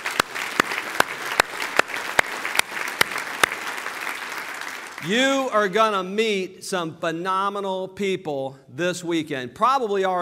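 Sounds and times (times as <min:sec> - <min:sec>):
audience applause: 0:00.0 - 0:05.2
few people clapping in rhythm: 0:00.0 - 0:05.2
speech: 0:05.0 - 0:10.1.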